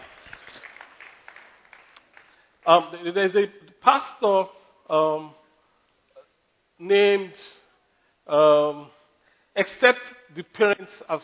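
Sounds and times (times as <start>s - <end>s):
audience applause: 0.0s - 2.4s
speech: 2.7s - 5.4s, 6.8s - 7.6s, 8.3s - 9.0s, 9.6s - 11.2s.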